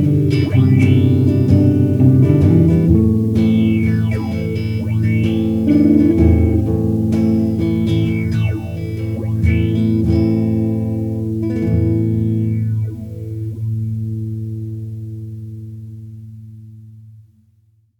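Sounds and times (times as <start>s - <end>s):
opto phaser effect: 0.0s - 13.5s.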